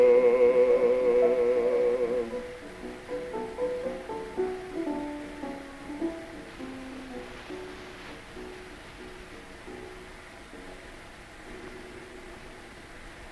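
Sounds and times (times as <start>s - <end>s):
gramophone playing: 0.0s - 10.0s.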